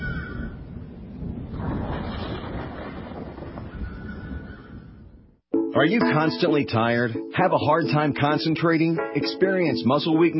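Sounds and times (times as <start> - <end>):
storm wind: 0.0 - 5.4
speech: 5.8 - 10.3.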